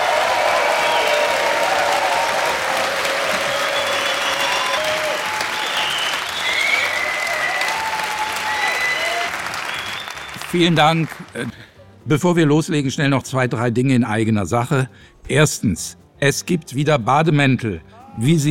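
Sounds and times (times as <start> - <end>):
applause from about 700 guests in a packed hall at the Estrel Congress Center: 0.0 - 11.6
speech: 10.5 - 18.4.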